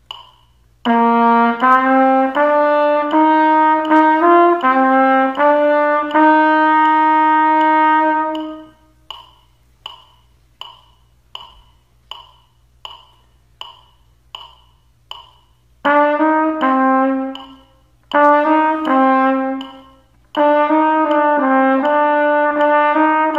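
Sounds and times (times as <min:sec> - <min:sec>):
trumpet: 0:00.8 - 0:09.0, 0:15.8 - 0:23.3.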